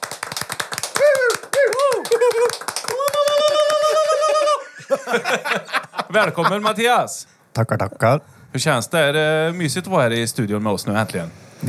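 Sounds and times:
studio applause for a guest: 0.0s - 4.7s
laughter: 1.0s - 7.1s
speech: 5.1s - 11.6s.

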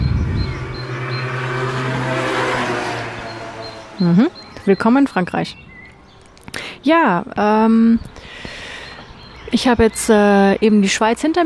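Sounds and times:
scooter driving past with buzzing engine: 0.0s - 5.1s
speech: 4.0s - 5.7s, 6.8s - 8.5s, 9.5s - 11.4s.

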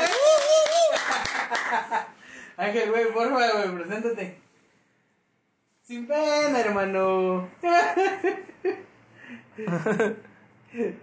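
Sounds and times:
applause: 0.0s - 2.0s
speech: 2.6s - 4.4s, 5.9s - 11.0s.

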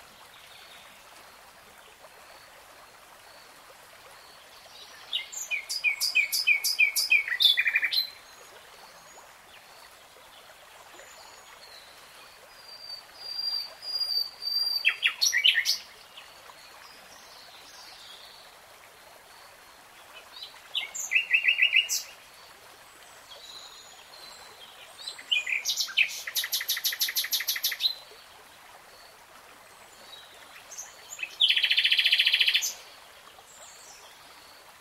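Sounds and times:
background hiss: 0.0s - 34.7s
nightingale song: 4.3s - 8.3s, 12.6s - 16.3s, 20.4s - 22.3s, 23.2s - 28.1s, 30.0s - 32.9s.

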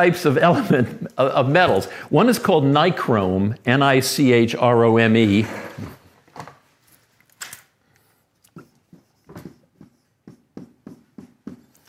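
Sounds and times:
speech: 0.0s - 6.5s
writing the word nichrome on a board: 8.5s - 11.8s.

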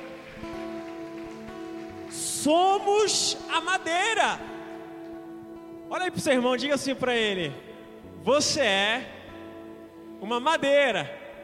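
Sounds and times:
audience applauding: 0.0s - 3.6s
speech: 2.4s - 4.6s, 5.9s - 9.2s, 10.2s - 11.2s.

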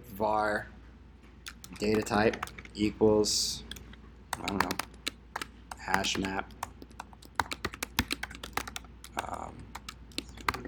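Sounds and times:
speech: 0.2s - 0.8s, 1.7s - 3.7s, 4.4s - 4.9s, 5.8s - 6.6s
typing code on a computer keyboard during a programming demo: 1.5s - 2.8s, 3.7s - 10.6s.

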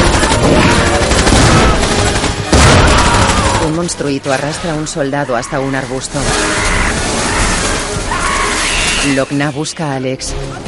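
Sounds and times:
rapid gunfire in a fantasy adventure film: 0.0s - 4.6s, 6.0s - 9.2s
speech: 3.9s - 6.9s, 9.0s - 10.6s.

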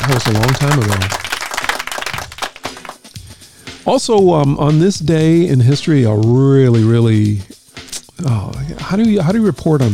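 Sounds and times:
round of applause: 0.0s - 3.1s
speech: 0.1s - 1.2s, 3.9s - 7.5s, 8.2s - 9.9s.

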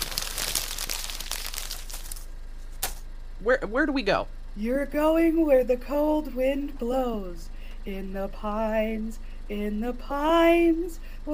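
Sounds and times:
paper or wrapper crumpled into a ball: 0.0s - 3.0s
speech: 3.4s - 11.3s.

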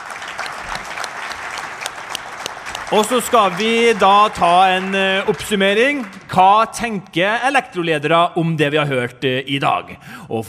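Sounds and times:
audience applause: 0.0s - 7.0s
speech: 2.9s - 10.4s.

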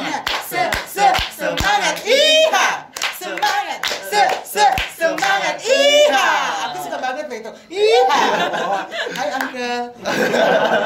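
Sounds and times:
rhythmic cowboy-style clapping: 0.0s - 6.7s, 8.9s - 9.6s
loud sing-song voices chanting together: 0.0s - 7.0s
laughter: 7.8s - 10.8s
speech: 8.1s - 10.8s.

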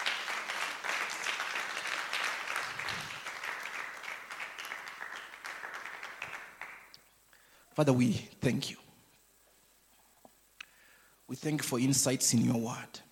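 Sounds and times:
audience clapping: 0.0s - 7.1s
speech: 7.8s - 8.8s, 11.4s - 13.1s.

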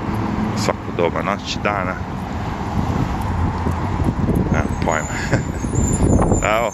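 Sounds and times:
speech: 0.6s - 2.2s, 4.8s - 6.7s
wind in New York roaring across the microphone: 2.0s - 6.7s
laughter: 4.9s - 5.8s.

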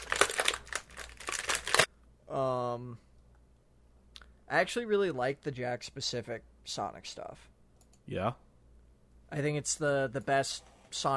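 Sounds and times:
plastic packaging being torn open: 0.0s - 1.9s
speech: 2.3s - 3.1s, 4.5s - 7.5s, 8.1s - 8.4s, 9.3s - 11.1s.

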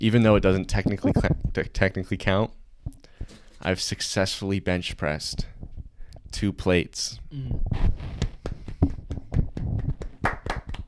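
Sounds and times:
speech: 0.0s - 5.5s, 6.3s - 8.3s
hand clapping applause: 8.2s - 10.8s.

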